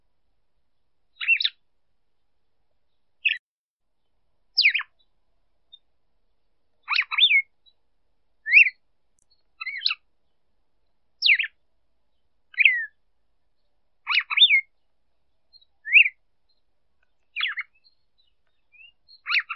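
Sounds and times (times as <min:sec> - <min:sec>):
female red-cowled cardinal calling: 0:01.2 - 0:01.6, 0:04.6 - 0:05.1, 0:06.8 - 0:07.8, 0:08.4 - 0:10.4, 0:11.2 - 0:11.6, 0:12.5 - 0:13.0, 0:13.6 - 0:19.5.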